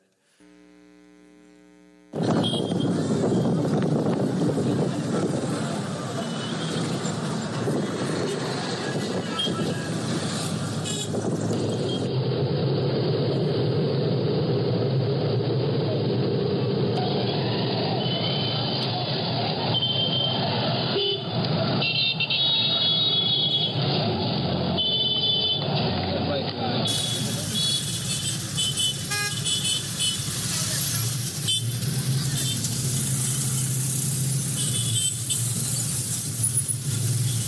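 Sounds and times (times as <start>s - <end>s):
vehicle rumble and road noise from traffic in Sierra Leone: 2.2s - 37.4s.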